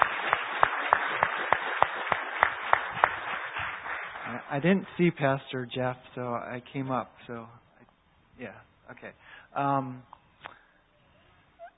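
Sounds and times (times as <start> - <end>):
audience applause: 0.0 - 5.0
speech: 4.3 - 7.6, 8.4 - 10.2.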